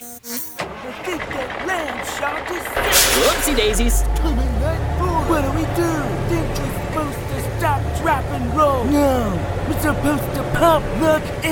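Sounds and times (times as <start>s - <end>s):
hotwired primitive landship engine cranking and starting: 0.6s - 7.0s
speech: 1.1s - 11.4s.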